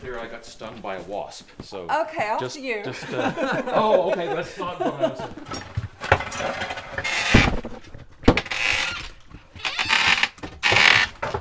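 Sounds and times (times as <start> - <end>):
speech: 0.0 - 5.8
laughter: 2.8 - 5.7
creaking door: 5.5 - 11.3.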